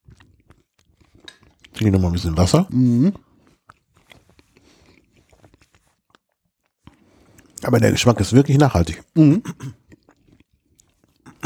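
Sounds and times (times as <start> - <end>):
biting and chewing bread: 0.0 - 2.4, 3.2 - 7.6, 9.4 - 11.4
speech: 1.8 - 3.3, 7.7 - 9.8.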